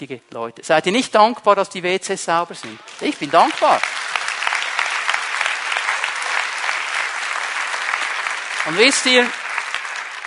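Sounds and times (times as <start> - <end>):
speech: 0.0 - 4.1, 8.7 - 9.4
audience clapping: 2.6 - 10.2.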